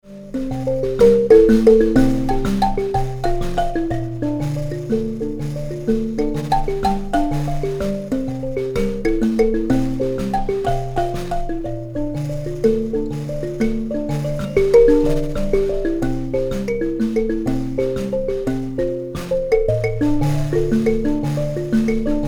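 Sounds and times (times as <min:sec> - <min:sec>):
mbira: 0:00.0 - 0:22.2.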